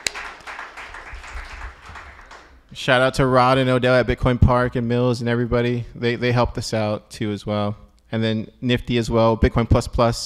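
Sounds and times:
audience round of applause: 0:00.0 - 0:02.7
speech: 0:02.8 - 0:10.2.

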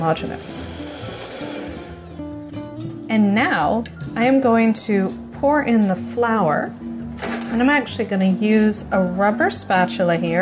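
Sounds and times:
speech: 0:00.0 - 0:00.9, 0:03.1 - 0:10.4
electric mixer beating egg yolk and sugar mixture: 0:00.0 - 0:02.2.

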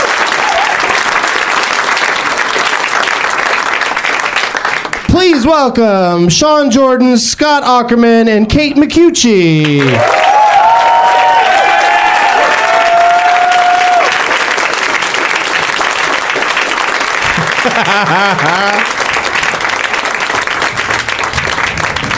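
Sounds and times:
crowd cheering and whooping: 0:00.0 - 0:01.1, 0:09.9 - 0:14.4
large crowd applauding: 0:00.0 - 0:05.4, 0:09.6 - 0:22.1
speech: 0:05.4 - 0:10.3
laughter: 0:17.2 - 0:19.0.

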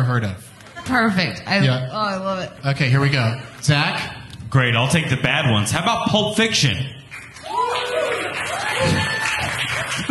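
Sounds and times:
speech: 0:00.0 - 0:07.0
audience clapping: 0:07.1 - 0:10.0.

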